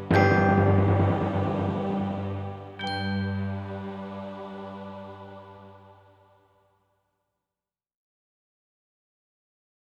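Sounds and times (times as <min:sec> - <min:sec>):
bells playing a G scale slowly: 0:00.0 - 0:04.6.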